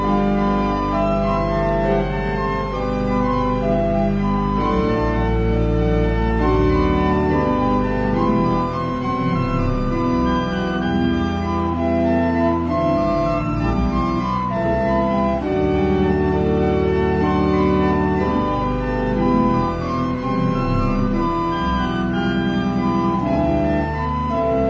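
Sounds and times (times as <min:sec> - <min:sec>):
organ piece: 0:00.0 - 0:24.6.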